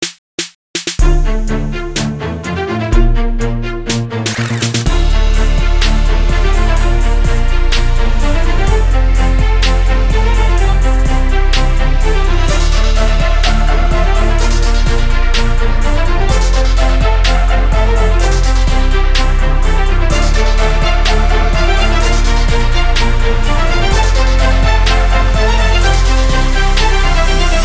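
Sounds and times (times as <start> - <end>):
strings: 1.0 - 27.6.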